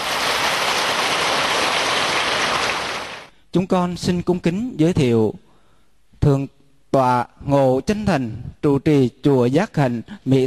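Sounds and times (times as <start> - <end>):
audience applause: 0.0 - 3.3
speech: 3.6 - 5.4, 6.2 - 10.4.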